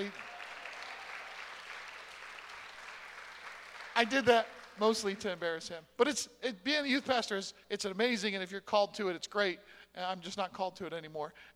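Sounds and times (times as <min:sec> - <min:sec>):
speech: 0:00.0 - 0:00.3, 0:04.0 - 0:11.5
church congregation clapping for a youth pastor: 0:00.0 - 0:05.6.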